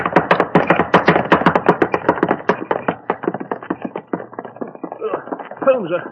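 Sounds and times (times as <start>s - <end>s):
horse hooves clattering as a horse-drawn cab charges past: 0.0s - 6.1s
speech: 5.7s - 6.1s.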